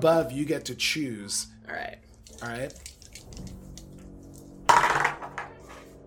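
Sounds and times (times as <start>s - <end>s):
speech: 0.0s - 3.6s
pair of six-sided dice thrown onto a hard surface: 4.7s - 5.5s.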